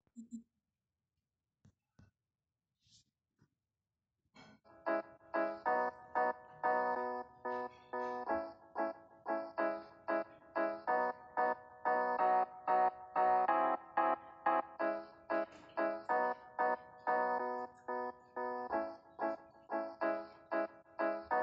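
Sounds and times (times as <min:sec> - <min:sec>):
instrumental music: 0:04.7 - 0:21.4.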